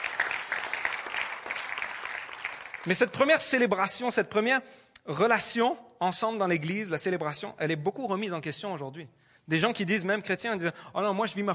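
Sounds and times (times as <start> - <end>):
audience applause: 0.0 - 3.0
speech: 2.8 - 11.5.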